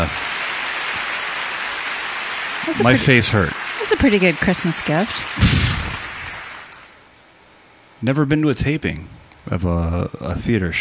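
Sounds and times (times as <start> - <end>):
audience applause at a live show: 0.0 - 7.0
speech: 2.6 - 5.7, 8.0 - 10.8.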